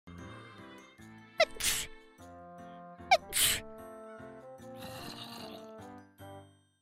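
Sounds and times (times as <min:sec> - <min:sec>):
person sneezing: 0:01.4 - 0:02.0, 0:03.1 - 0:03.7.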